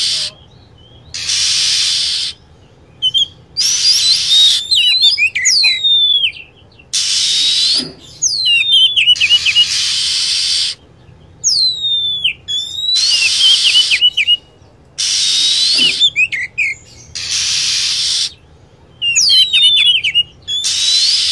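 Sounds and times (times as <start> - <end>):
lovebird calls: 0.0 - 21.3.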